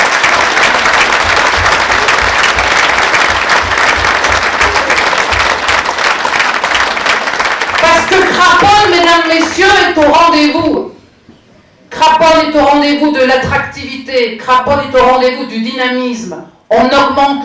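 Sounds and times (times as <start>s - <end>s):
audience applause: 0.0s - 9.6s
speech: 9.9s - 10.9s, 12.2s - 17.4s.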